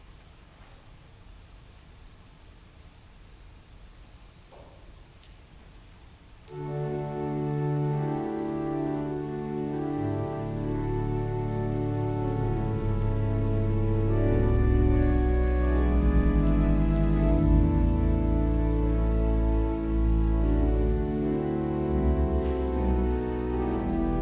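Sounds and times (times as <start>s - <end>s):
organ music: 6.5s - 24.2s.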